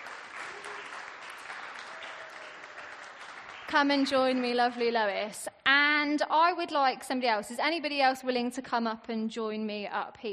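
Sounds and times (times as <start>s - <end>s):
audience cheering and applause: 0.0s - 4.8s
speech: 3.7s - 10.3s.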